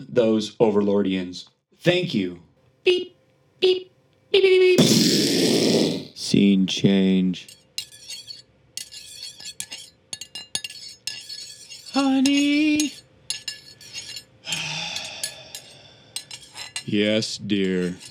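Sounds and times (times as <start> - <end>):
speech: 0.1 - 7.6, 12.0 - 13.0, 16.9 - 18.1
spoon clinking while stirring tea in cup: 7.5 - 14.3, 15.0 - 17.0.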